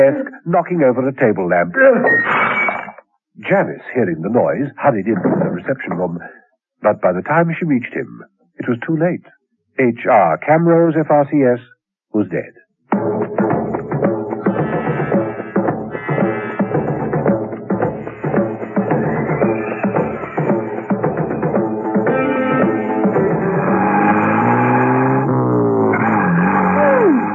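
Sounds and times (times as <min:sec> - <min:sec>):
speech: 0:00.0 - 0:02.4, 0:03.4 - 0:13.3
car engine revving while driving through the countryside: 0:13.0 - 0:27.3.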